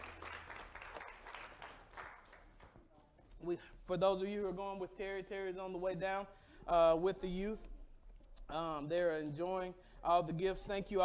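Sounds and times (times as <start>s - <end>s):
audience hand clapping: 0.0s - 3.2s
speech: 3.4s - 7.7s, 8.5s - 11.0s.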